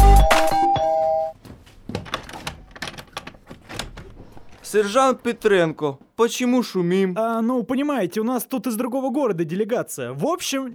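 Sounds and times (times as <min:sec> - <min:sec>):
doorbell ringing: 0:00.0 - 0:01.4
speech: 0:04.7 - 0:10.7.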